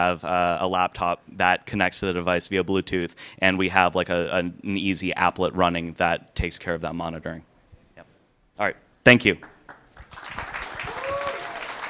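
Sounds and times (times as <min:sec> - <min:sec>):
speech: 0:00.0 - 0:07.5, 0:08.6 - 0:09.5
audience applause following a team's presentation at a pitch event: 0:09.7 - 0:11.8.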